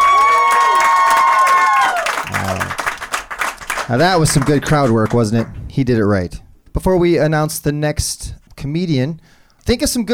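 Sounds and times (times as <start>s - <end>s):
long high-pitched whoop: 0.0s - 2.6s
crowd cheering and clapping: 0.0s - 5.2s
speech: 3.9s - 10.1s.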